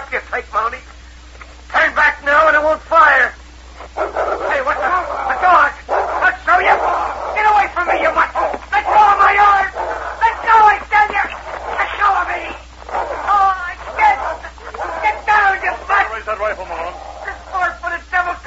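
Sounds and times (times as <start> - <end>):
speech: 0.1 - 0.9
excited voices: 1.7 - 18.4
dogs barking: 3.8 - 18.4.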